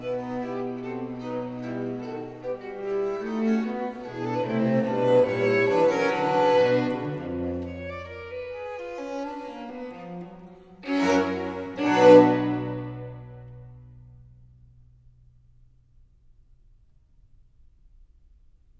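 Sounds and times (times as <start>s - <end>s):
fugue in C arranged for string quartet: 0.0s - 14.2s.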